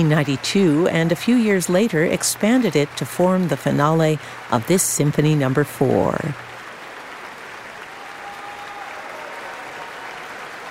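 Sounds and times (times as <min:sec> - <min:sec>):
speech: 0:00.0 - 0:06.5
concert hall audience applauding and cheering in Marian Anderson Hall: 0:00.0 - 0:10.7.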